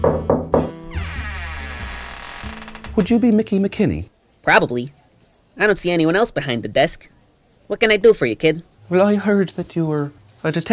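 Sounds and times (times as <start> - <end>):
knocking on an office door: 0.0 - 0.8
speech: 3.0 - 5.0, 5.6 - 10.7.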